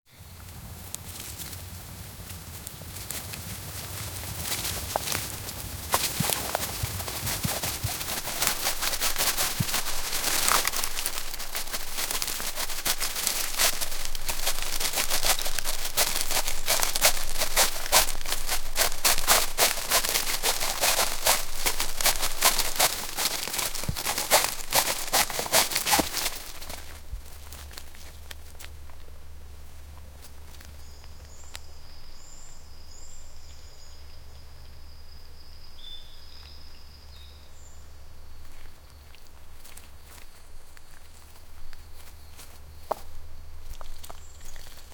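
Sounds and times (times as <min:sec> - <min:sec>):
deer running: 0:00.2 - 0:33.8, 0:37.3 - 0:44.9.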